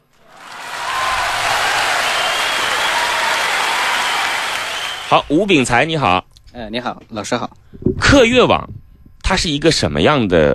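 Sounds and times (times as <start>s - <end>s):
audience applause: 0.2s - 5.3s
speech: 5.1s - 10.5s.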